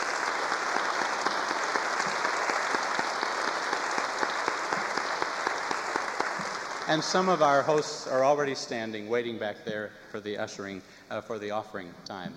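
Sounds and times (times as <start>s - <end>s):
audience applause: 0.0s - 8.5s
speech: 6.9s - 12.3s.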